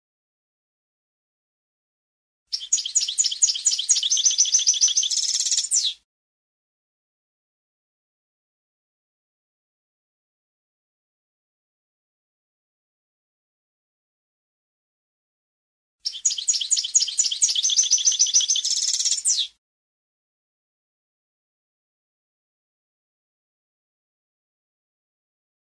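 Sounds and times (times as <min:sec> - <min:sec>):
European goldfinch song of tinkling twitter: 0:02.6 - 0:05.9, 0:16.0 - 0:19.5.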